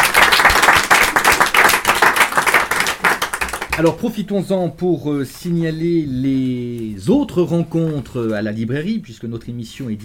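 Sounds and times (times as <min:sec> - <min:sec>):
audience applause: 0:00.0 - 0:03.9
speech: 0:03.8 - 0:10.0.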